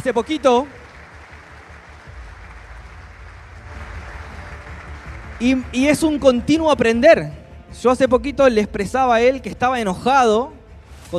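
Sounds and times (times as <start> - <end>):
speech: 0.0 - 0.8, 5.4 - 11.1
audience applause: 0.0 - 6.7.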